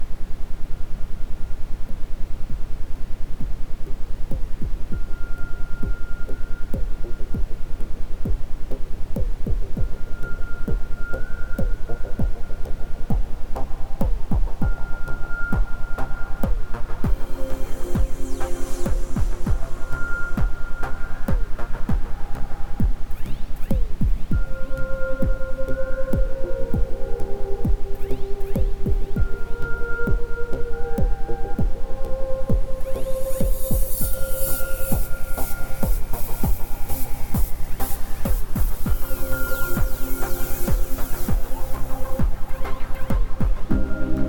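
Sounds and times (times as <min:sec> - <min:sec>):
ambient sound: 0:00.0 - 0:44.2
isochronic tones: 0:00.0 - 0:44.2.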